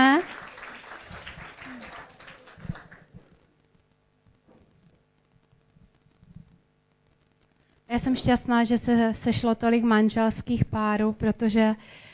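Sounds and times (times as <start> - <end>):
group applause: 0.0 - 3.4
speech: 8.0 - 12.1.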